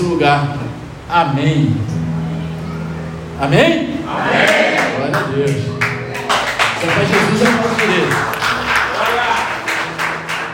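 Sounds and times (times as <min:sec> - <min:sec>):
speech: 0:00.1 - 0:01.9, 0:03.4 - 0:05.8, 0:06.8 - 0:08.6
crowd applause: 0:04.4 - 0:10.5.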